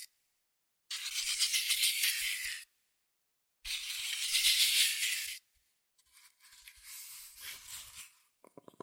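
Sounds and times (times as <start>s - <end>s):
cardboard and paper scratching: 0.9s - 2.7s, 3.7s - 5.4s, 6.1s - 8.2s.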